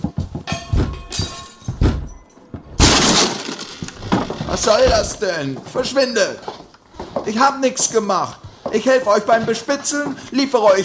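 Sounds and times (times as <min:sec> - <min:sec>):
loud splintering crash with breaking debris: 0:01.2 - 0:05.4
heavy thuds and bangs on a door being forced open: 0:01.7 - 0:02.8
speech: 0:04.6 - 0:06.6, 0:07.2 - 0:10.8.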